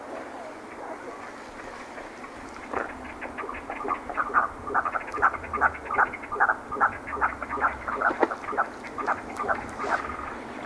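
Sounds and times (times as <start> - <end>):
merganser rattling calls: 2.2 - 10.4.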